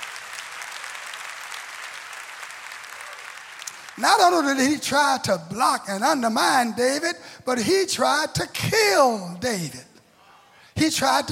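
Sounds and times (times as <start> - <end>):
audience clapping hands: 0.0 - 4.6
speech: 4.0 - 9.9, 10.8 - 11.3.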